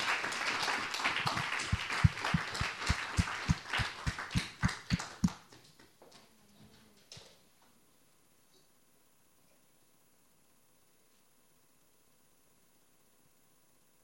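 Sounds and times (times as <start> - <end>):
crowd applauding in a large room: 0.0 - 5.6.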